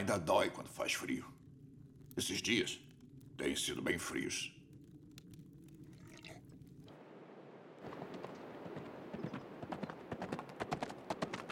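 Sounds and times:
speech: 0:00.0 - 0:01.4, 0:02.2 - 0:02.8, 0:03.4 - 0:04.6
horse hooves clip-clopping: 0:07.8 - 0:11.4.

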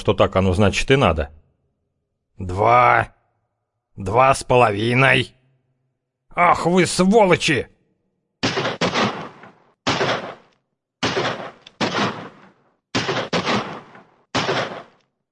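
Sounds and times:
speech: 0:00.0 - 0:01.4, 0:02.4 - 0:03.2, 0:04.0 - 0:05.4, 0:06.4 - 0:07.7
pistol firing off its whole magazine: 0:08.4 - 0:15.0.

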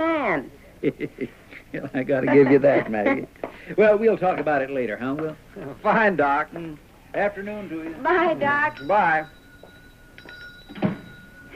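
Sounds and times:
speech: 0:00.4 - 0:09.4
telephone ringing: 0:08.0 - 0:11.5.

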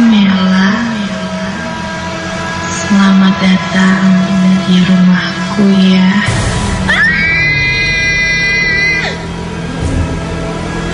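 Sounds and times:
constant low rumbling background: 0:00.0 - 0:10.9
speech: 0:03.4 - 0:06.5
person screaming while riding a wobbling motorbike in a basement: 0:06.9 - 0:09.2.

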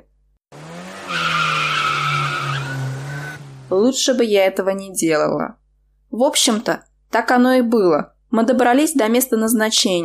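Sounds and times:
car tires squealing: 0:00.6 - 0:03.7
low car engine rumble: 0:00.6 - 0:04.1
speech: 0:03.7 - 0:10.0.

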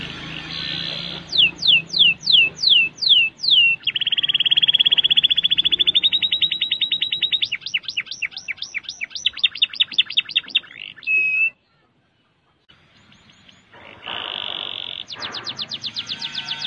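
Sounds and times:
canary singing whistles, rattles and repeated notes: 0:00.0 - 0:16.6.

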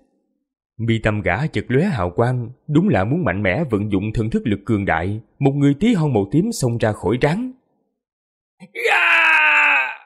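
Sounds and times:
speech: 0:00.8 - 0:07.6, 0:08.6 - 0:09.3
anguished scream of a wounded man: 0:08.6 - 0:10.0.

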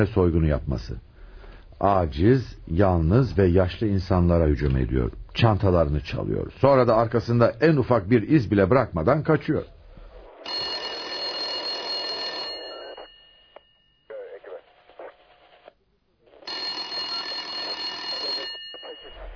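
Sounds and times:
speech: 0:00.0 - 0:01.1, 0:01.8 - 0:09.8
old-fashioned telephone bell ringing at a police station desk: 0:10.4 - 0:14.3, 0:16.4 - 0:19.3.

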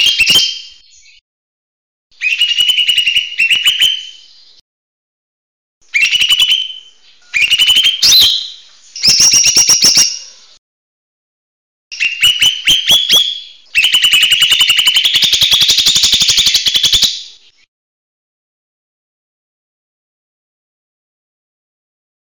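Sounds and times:
buzzy chattering bird song: 0:02.2 - 0:04.6, 0:05.9 - 0:10.6, 0:11.9 - 0:17.7.

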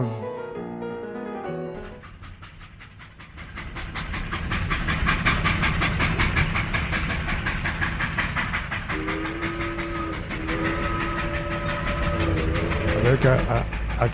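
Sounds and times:
steam train wheels clickety-clack: 0:00.0 - 0:14.1
steam train two-tone whistle: 0:08.9 - 0:13.1
speech: 0:13.2 - 0:14.1.

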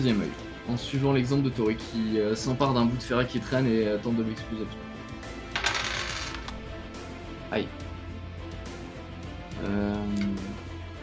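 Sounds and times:
speech: 0:00.0 - 0:05.0, 0:07.5 - 0:07.8, 0:09.6 - 0:10.4
dice clattering across a hard tabletop: 0:05.6 - 0:06.6.

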